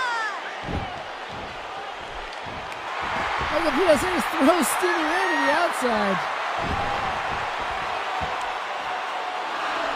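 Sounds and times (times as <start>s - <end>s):
pro wrestling crowd roar: 0.0s - 9.9s
double-handed punch slams in a pro wrestling match: 0.6s - 3.7s, 6.5s - 8.6s
speech: 3.6s - 7.5s.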